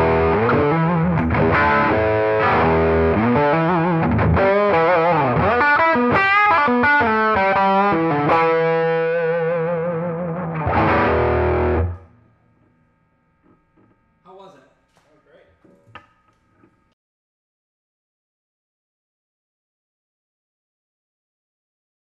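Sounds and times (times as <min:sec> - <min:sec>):
1965 Gibson Trini Lopez Deluxe guitar: 0:00.0 - 0:12.2.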